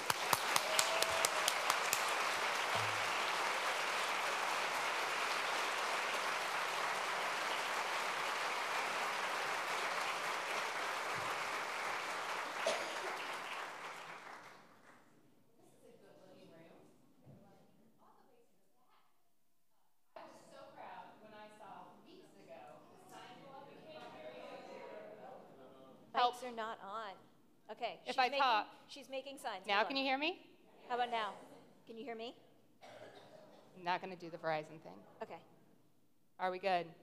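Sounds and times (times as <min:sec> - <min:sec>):
audience applause welcoming two speakers at a library-supporters' event: 0:00.0 - 0:15.0
speech: 0:26.5 - 0:32.4, 0:33.8 - 0:35.5, 0:36.4 - 0:37.0.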